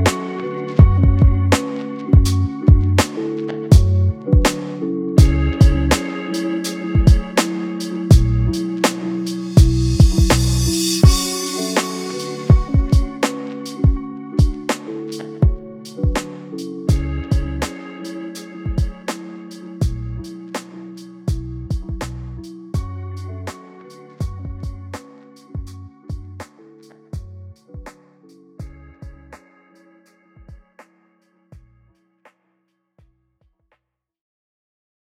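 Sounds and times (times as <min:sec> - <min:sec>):
beats: 0:00.1 - 0:17.8, 0:18.7 - 0:20.8, 0:21.3 - 0:22.9.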